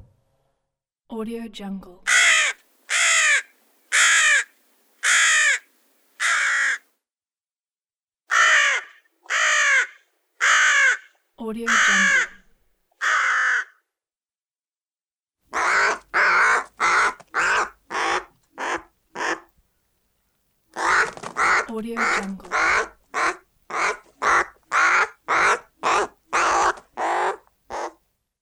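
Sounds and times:
village animals: 0:02.1 - 0:06.8, 0:08.3 - 0:11.1, 0:11.7 - 0:12.3, 0:15.5 - 0:19.5, 0:20.8 - 0:28.0.

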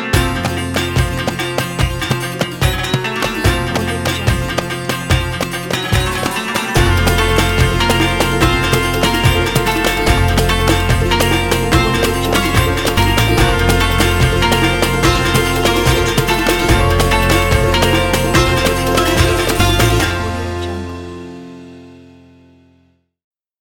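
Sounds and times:
Arabic intro logo music: 0:00.1 - 0:22.2.

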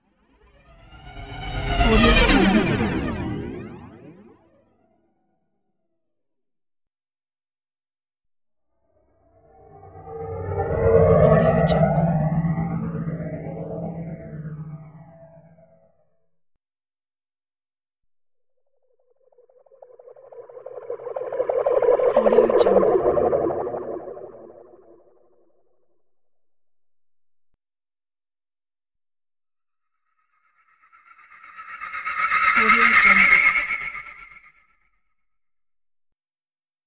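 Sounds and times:
spaceship passing by: 0:00.3 - 0:04.6, 0:09.1 - 0:16.1, 0:19.0 - 0:25.7, 0:30.2 - 0:34.5.

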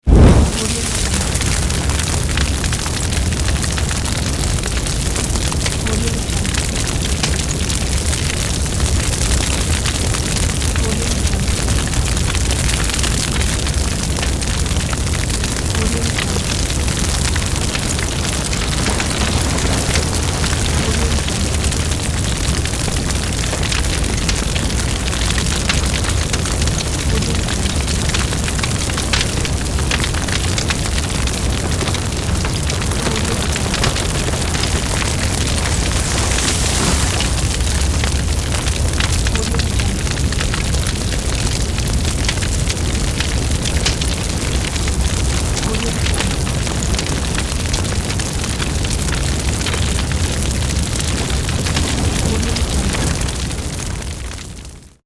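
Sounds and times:
fire: 0:00.0 - 0:55.0.

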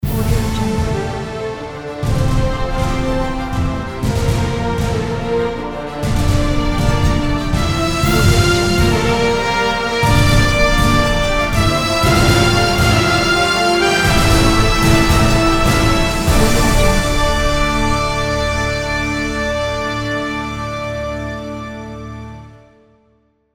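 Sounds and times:
dramatic news documentary intro music: 0:00.0 - 0:22.7.

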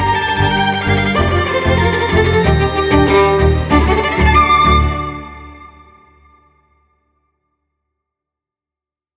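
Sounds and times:
modern energetic cellos and violins: 0:00.0 - 0:05.7.

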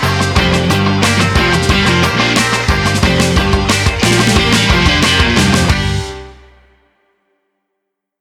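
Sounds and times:
funk drum kit: 0:00.0 - 0:06.6.

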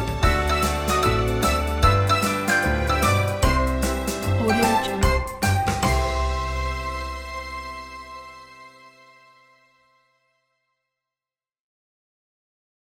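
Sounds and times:
TV show theme music: 0:00.0 - 0:09.3.

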